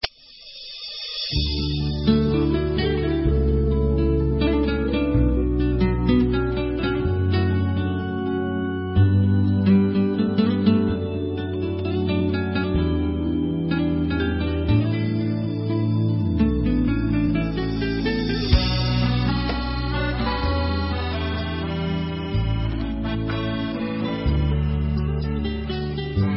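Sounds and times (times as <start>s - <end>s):
instrumental music: 0.0s - 26.3s.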